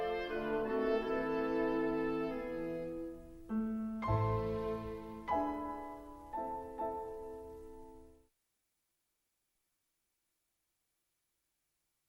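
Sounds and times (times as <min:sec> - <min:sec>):
first movement of a piano concerto: 0:00.0 - 0:08.2.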